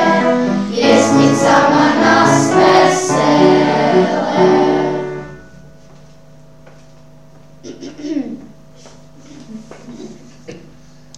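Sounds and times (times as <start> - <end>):
piano: 0.0 - 6.3.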